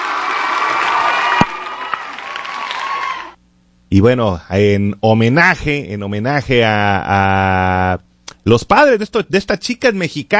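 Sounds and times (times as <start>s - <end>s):
audience applause: 0.0s - 3.4s
speech: 3.9s - 10.3s.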